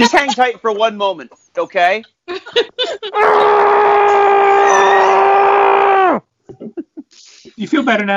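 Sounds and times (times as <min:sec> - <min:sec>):
speech: 0:00.0 - 0:03.9, 0:07.6 - 0:08.1
muffled scream into a pillow: 0:03.2 - 0:06.2.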